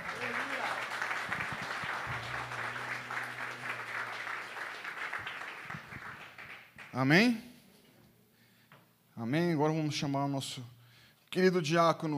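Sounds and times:
audience applauding: 0:00.0 - 0:07.0
speech: 0:07.0 - 0:07.5, 0:09.3 - 0:12.1.

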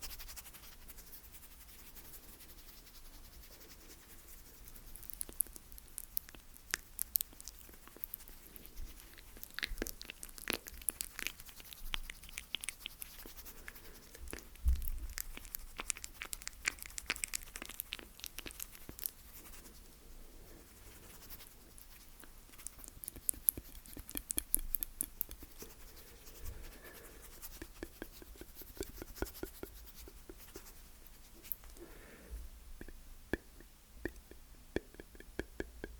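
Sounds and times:
slow wet mouth clicks and pops: 0:04.7 - 0:19.7, 0:21.2 - 0:30.7, 0:32.8 - 0:35.9.

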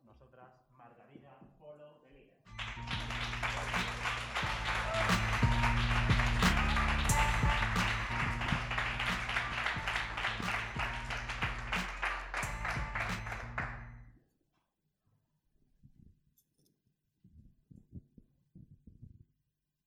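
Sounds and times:
audience applause: 0:02.5 - 0:13.9.

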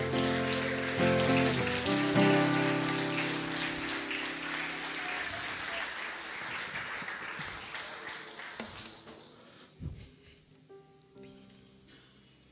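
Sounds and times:
church audience applauding: 0:00.0 - 0:09.5.

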